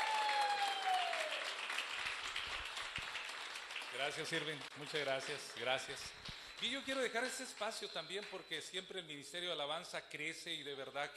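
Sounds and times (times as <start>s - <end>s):
audience applause: 0.0s - 5.8s
speech: 4.0s - 11.1s.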